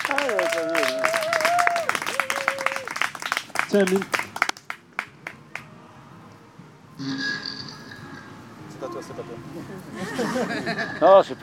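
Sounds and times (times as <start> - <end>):
audience applause: 0.0 - 5.1
speech: 0.2 - 0.9, 3.7 - 4.2, 9.0 - 11.4
laughter: 9.8 - 11.3.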